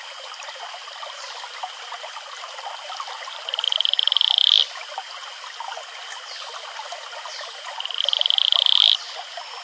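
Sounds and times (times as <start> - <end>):
male Atelopus franciscus advertisement call pulsed trill: 3.5 - 4.6, 7.8 - 9.0.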